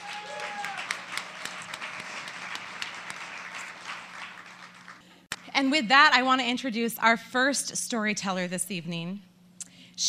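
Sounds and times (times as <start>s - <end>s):
audience applause: 0.0s - 5.0s
speech: 5.6s - 9.3s.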